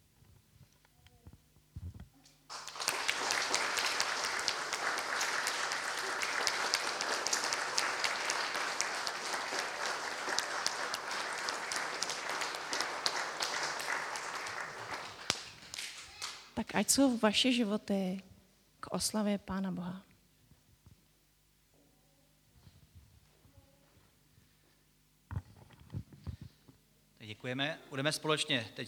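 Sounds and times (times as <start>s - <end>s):
applause: 2.5s - 16.5s
speech: 16.7s - 18.3s, 18.9s - 20.1s, 27.4s - 28.8s.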